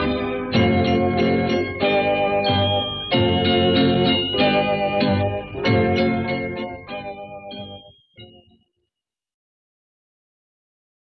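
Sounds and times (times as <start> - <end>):
instrumental theme music: 0.0 - 8.8.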